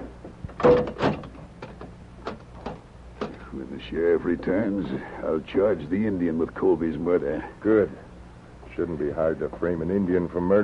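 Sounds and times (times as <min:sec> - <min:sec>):
cell door closing and locking: 0:00.5 - 0:03.4
speech: 0:00.6 - 0:01.0, 0:03.8 - 0:08.1, 0:08.8 - 0:10.6.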